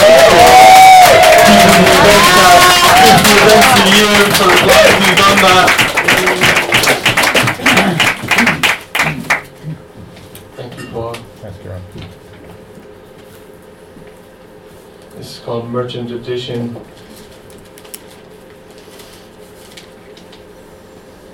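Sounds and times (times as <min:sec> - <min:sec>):
audience applause and cheering: 0:00.0 - 0:09.4
speech: 0:16.2 - 0:16.8.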